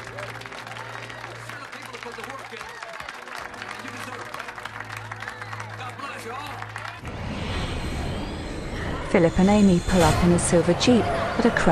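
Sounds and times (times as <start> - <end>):
crowd applauding: 0.0 - 7.3
speech: 2.2 - 2.9, 9.1 - 11.6.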